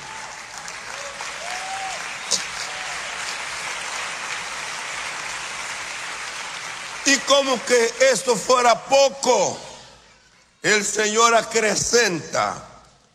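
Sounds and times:
audience applause: 0:00.0 - 0:07.9
speech: 0:07.1 - 0:09.7, 0:10.6 - 0:12.7.

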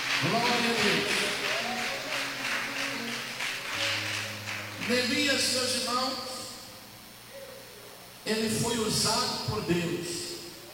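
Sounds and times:
crowd clapping in a steady rhythm: 0:00.0 - 0:06.2
speech: 0:00.2 - 0:01.2, 0:04.9 - 0:06.3, 0:08.3 - 0:10.2.

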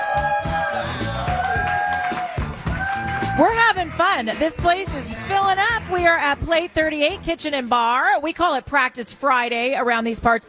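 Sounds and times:
cheering whoops: 0:00.0 - 0:03.8
diners applauding: 0:00.0 - 0:07.2
speech: 0:03.4 - 0:10.4.

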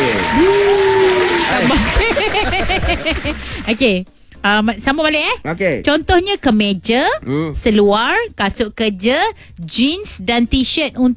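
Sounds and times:
audience clapping at a talk on buying branded goods: 0:00.0 - 0:03.9
chuckling: 0:01.6 - 0:03.7
speech: 0:03.0 - 0:11.1.

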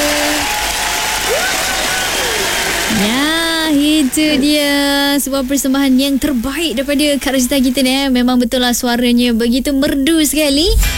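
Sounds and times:
audience applause: 0:00.0 - 0:08.0
speech: 0:04.1 - 0:10.9.

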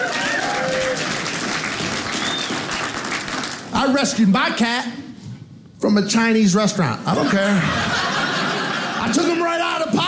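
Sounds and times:
whistles and cheers: 0:00.0 - 0:01.1, 0:02.0 - 0:02.8
crowd applauding: 0:00.0 - 0:03.7
speech: 0:03.9 - 0:05.0, 0:05.8 - 0:08.1, 0:09.1 - 0:10.0
laughter: 0:07.1 - 0:09.6.

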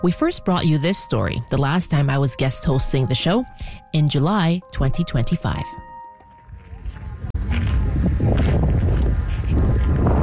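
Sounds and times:
speech: 0:00.0 - 0:05.9
strong wind across an open salt flat: 0:06.4 - 0:10.2.

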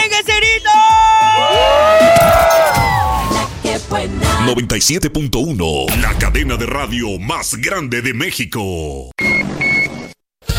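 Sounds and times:
group of people shouting and cheering: 0:00.0 - 0:03.5
speech: 0:04.5 - 0:09.2.

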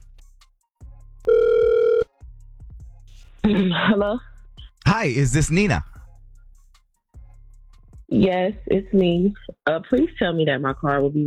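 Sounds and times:
phone line noise: 0:01.3 - 0:02.0
outgoing phone call ringback tone: 0:01.3 - 0:02.1
speech: 0:03.4 - 0:04.3, 0:04.9 - 0:05.9, 0:08.1 - 0:11.2.

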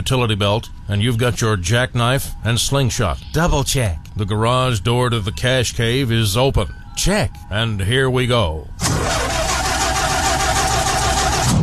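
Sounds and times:
speech: 0:00.0 - 0:09.2
car engine cranking without catching on a dead battery: 0:08.8 - 0:11.6.

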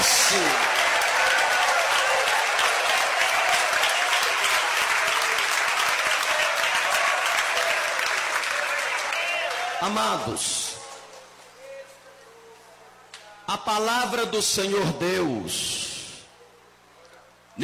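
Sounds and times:
audience applauding: 0:00.0 - 0:11.3
speech: 0:09.9 - 0:10.6, 0:13.6 - 0:15.9.

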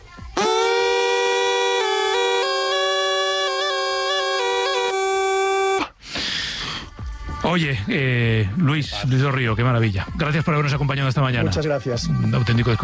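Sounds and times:
bagpipe playing: 0:00.4 - 0:05.9
speech: 0:07.6 - 0:12.8.

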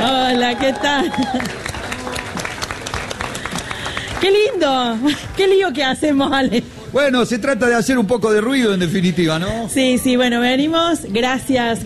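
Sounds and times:
audience applause: 0:00.0 - 0:04.9
speech: 0:00.4 - 0:02.2, 0:04.2 - 0:11.8.

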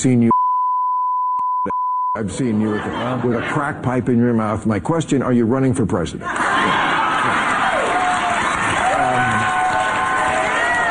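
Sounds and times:
speech: 0:00.0 - 0:00.4, 0:01.6 - 0:06.8
crowd cheering and whooping: 0:06.3 - 0:10.8.

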